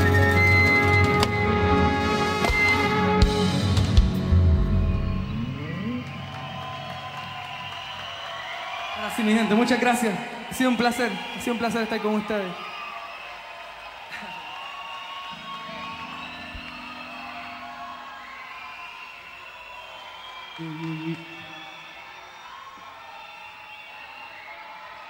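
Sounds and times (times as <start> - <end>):
festival crowd cheering and applauding: 0.0 - 25.0
speech: 9.3 - 12.7.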